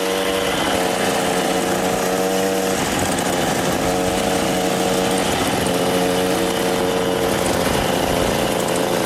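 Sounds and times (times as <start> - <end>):
moped engine from a film buzzing: 0.0 - 9.0.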